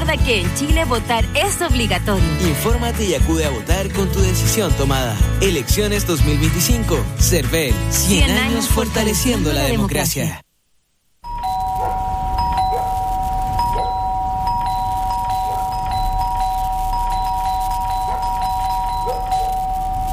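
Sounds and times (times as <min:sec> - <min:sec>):
speech: 0:00.1 - 0:10.4
doorbell chimes: 0:11.2 - 0:20.1
steady electronic tone: 0:11.2 - 0:20.1.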